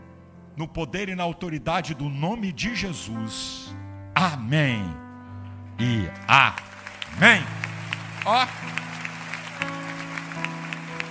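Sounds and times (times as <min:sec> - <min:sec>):
worship music chords: 0:00.0 - 0:11.0
speech: 0:00.6 - 0:05.0, 0:05.8 - 0:07.6, 0:08.2 - 0:08.8
church congregation clapping along with worship music: 0:05.8 - 0:11.0.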